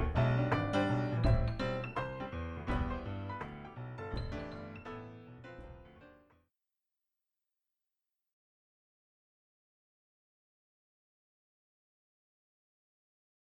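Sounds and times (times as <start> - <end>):
instrumental piano music: 0.0 - 6.3.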